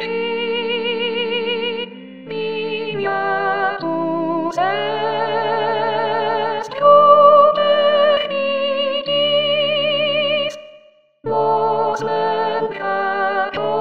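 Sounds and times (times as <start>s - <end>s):
soprano singing: 0.0s - 10.7s, 11.3s - 13.7s.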